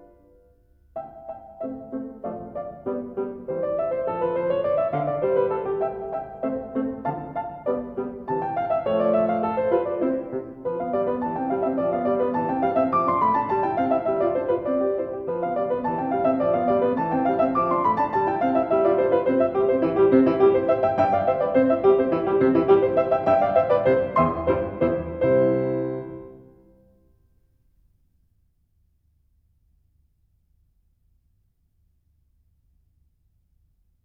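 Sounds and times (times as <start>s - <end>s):
piano sonata rondo: 0.0s - 27.2s.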